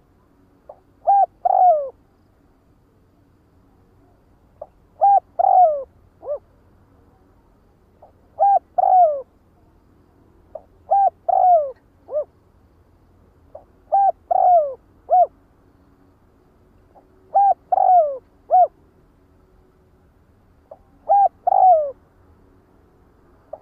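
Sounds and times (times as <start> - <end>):
spotted dove cooing: 0.7 - 2.0, 4.6 - 6.4, 8.0 - 9.3, 10.5 - 12.4, 13.5 - 15.4, 17.0 - 18.8, 20.7 - 22.0.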